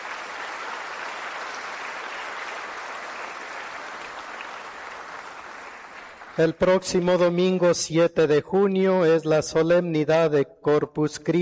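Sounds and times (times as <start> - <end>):
audience applause: 0.0 - 6.6
speech: 6.4 - 11.4.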